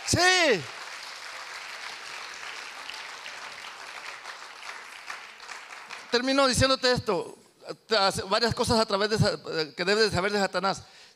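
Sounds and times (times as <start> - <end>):
audience applauding: 0.0 - 6.7
speech: 0.1 - 0.8, 6.1 - 11.1.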